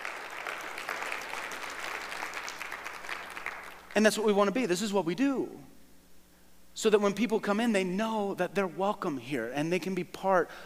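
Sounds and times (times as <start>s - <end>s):
audience applause: 0.0s - 3.9s
speech: 4.0s - 5.7s, 6.8s - 10.6s.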